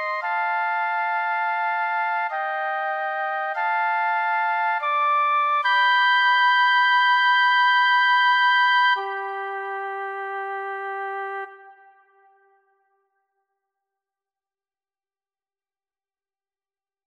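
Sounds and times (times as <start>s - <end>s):
flute duo playing an anthem: 0.0s - 12.7s.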